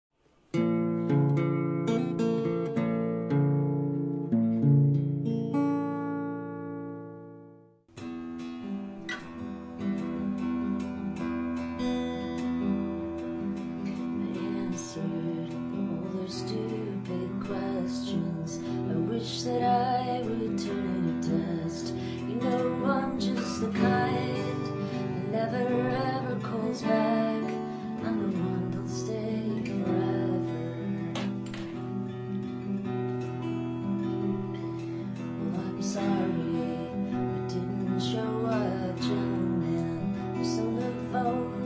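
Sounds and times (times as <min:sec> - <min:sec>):
acoustic music: 0:00.5 - 0:41.6.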